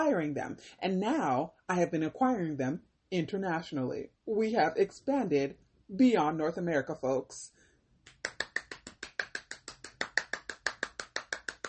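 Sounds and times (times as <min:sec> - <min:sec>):
speech: 0:00.0 - 0:07.6
single person clapping: 0:08.0 - 0:11.6.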